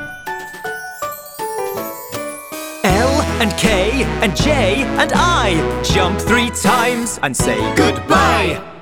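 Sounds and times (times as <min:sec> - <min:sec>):
bell ringing: 0:00.0 - 0:04.2
speech: 0:03.4 - 0:08.7.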